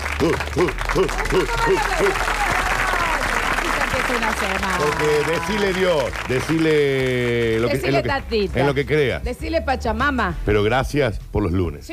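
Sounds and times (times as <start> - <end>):
audience applause: 0.0 - 8.7
speech: 0.2 - 2.4, 4.1 - 11.9.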